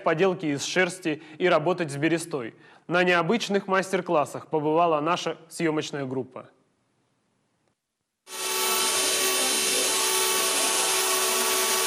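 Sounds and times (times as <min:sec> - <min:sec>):
speech: 0:00.0 - 0:06.6
machine tool whirring: 0:08.3 - 0:11.8.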